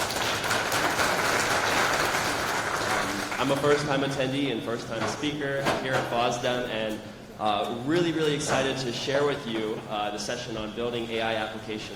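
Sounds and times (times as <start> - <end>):
audience applause: 0.0 - 3.6
speech: 3.4 - 11.9.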